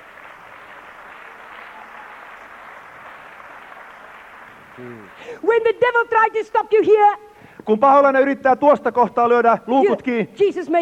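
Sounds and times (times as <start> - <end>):
crowd clapping: 0.0 - 5.3
speech: 4.8 - 10.7.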